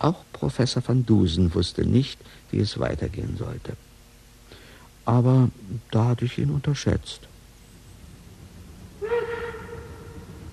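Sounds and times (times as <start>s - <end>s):
speech: 0.0s - 3.9s, 5.0s - 7.3s
train whistle: 9.0s - 10.5s.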